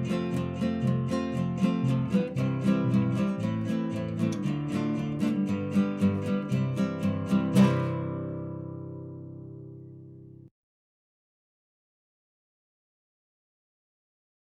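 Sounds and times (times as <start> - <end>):
instrumental music: 0.0 - 10.5.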